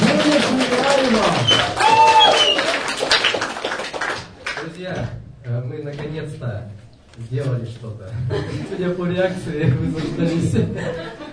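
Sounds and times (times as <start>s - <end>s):
audience applause at a launch event for an Orthodox youth foundation: 0.0s - 4.7s
speech: 7.2s - 11.2s
laughter: 8.1s - 9.0s, 9.6s - 11.3s.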